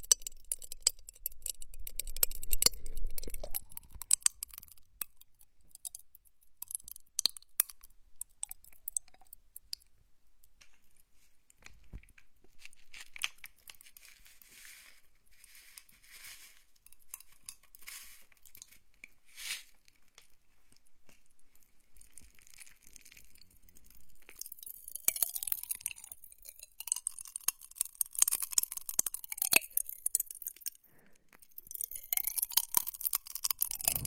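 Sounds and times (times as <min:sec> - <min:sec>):
wet mouth sounds: 0:00.0 - 0:09.4, 0:25.2 - 0:34.0
popping candy crackling in mouth: 0:00.0 - 0:10.7, 0:11.6 - 0:14.3, 0:16.8 - 0:34.0.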